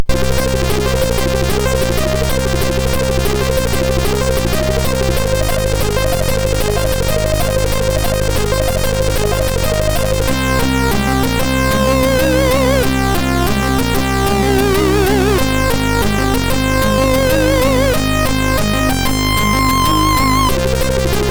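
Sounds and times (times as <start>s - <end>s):
SID MOS6581R3 chip sound: 0.0s - 21.3s.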